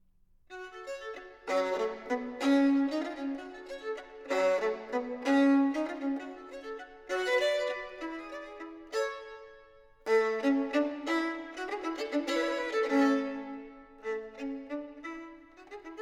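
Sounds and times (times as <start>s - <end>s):
violin partita in G minor: 0.5s - 16.0s.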